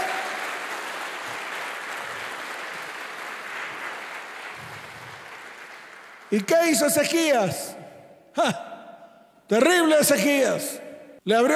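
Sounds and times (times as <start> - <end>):
crowd applause: 0.0 - 6.5
speech: 6.3 - 7.8, 8.4 - 8.6, 9.5 - 11.5.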